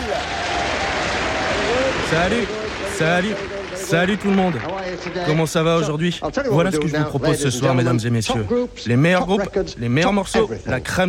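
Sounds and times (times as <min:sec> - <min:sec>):
studio audience applause: 0:00.0 - 0:06.9
speech: 0:02.1 - 0:11.0.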